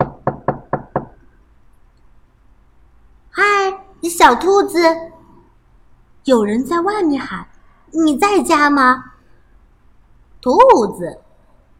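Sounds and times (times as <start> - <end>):
knocking on a door: 0.0 - 1.2
speech: 4.0 - 5.1, 6.3 - 9.1, 10.4 - 11.2.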